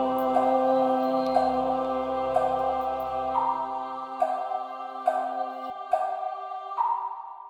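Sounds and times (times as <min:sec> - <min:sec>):
contralto voice singing: 0:00.0 - 0:07.2.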